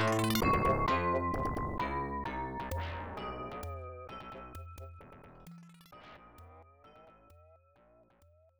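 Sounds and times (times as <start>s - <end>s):
vibraphone: 0.0s - 4.9s.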